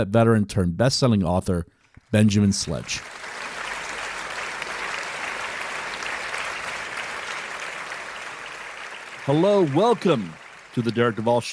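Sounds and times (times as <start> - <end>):
speech: 0.0 - 3.3, 9.3 - 11.5
show audience applause welcoming a guest: 2.6 - 11.5.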